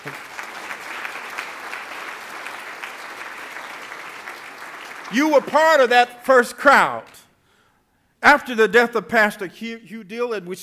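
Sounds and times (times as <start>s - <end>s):
audience clapping: 0.0s - 6.1s
speech: 5.1s - 7.2s, 8.2s - 10.6s.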